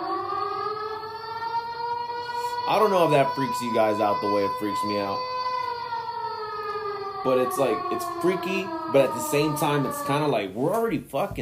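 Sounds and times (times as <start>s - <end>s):
alarm siren wailing: 0.0s - 11.0s
speech: 2.7s - 5.3s, 7.2s - 11.4s.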